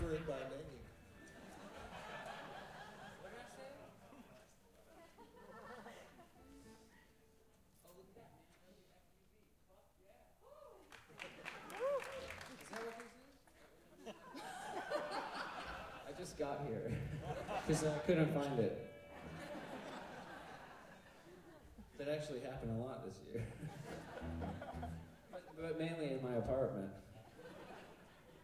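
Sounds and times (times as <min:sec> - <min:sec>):
laughter: 0:00.0 - 0:06.8, 0:13.6 - 0:22.0, 0:23.3 - 0:25.6, 0:27.1 - 0:28.4
audience clapping: 0:10.8 - 0:13.7
speech: 0:17.7 - 0:18.9, 0:22.2 - 0:25.0, 0:25.6 - 0:27.1.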